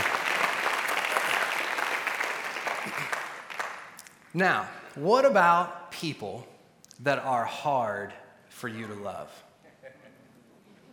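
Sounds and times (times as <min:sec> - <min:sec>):
audience clapping: 0:00.0 - 0:04.3
speech: 0:04.4 - 0:09.5.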